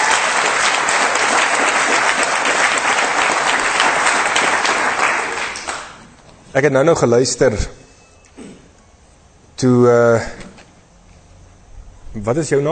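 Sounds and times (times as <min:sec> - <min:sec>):
audience applauding: 0:00.0 - 0:06.2
speech: 0:06.6 - 0:07.8, 0:09.6 - 0:10.4, 0:12.2 - 0:12.7.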